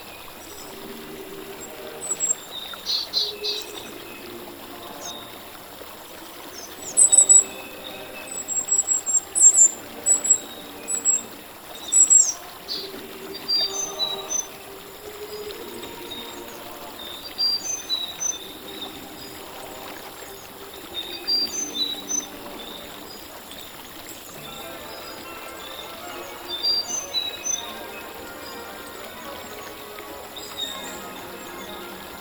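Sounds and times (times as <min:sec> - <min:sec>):
forest ambience: 0:00.0 - 0:32.2.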